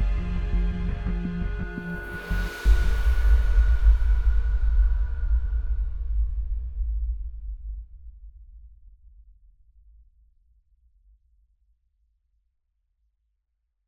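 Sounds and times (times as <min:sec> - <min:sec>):
subtle dark in-game ambient soundscape: 0:00.0 - 0:07.1.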